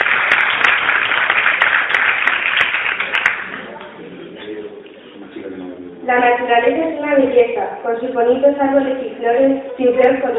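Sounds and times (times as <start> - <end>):
strong applause: 0.0 - 4.0
speech: 6.1 - 10.3.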